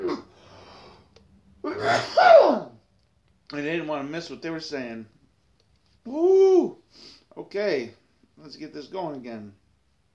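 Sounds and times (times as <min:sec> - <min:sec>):
cough: 0:00.0 - 0:00.3, 0:01.7 - 0:02.7
speech: 0:03.5 - 0:05.2, 0:06.0 - 0:09.6.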